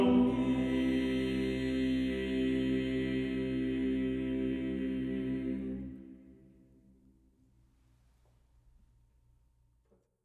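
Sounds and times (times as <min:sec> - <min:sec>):
vocal group singing without soprano: 0:00.0 - 0:06.3.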